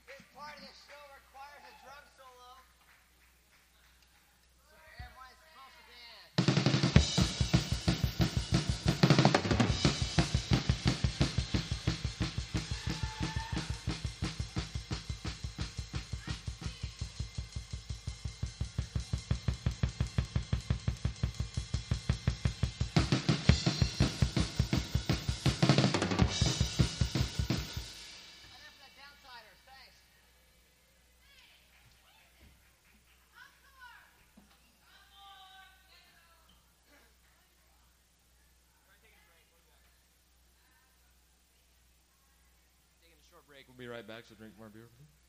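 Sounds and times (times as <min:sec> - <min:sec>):
drum solo: 0:06.3 - 0:29.7.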